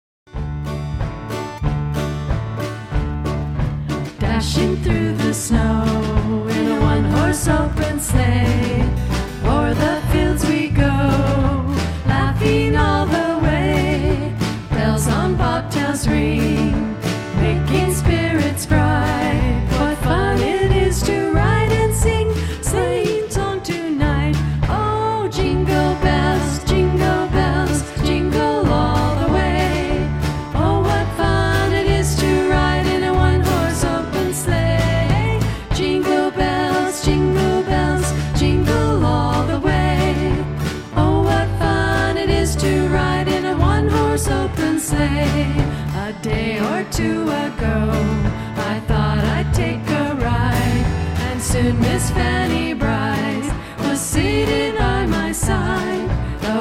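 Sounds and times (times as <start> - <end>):
Christmas song: 0.4 - 56.5.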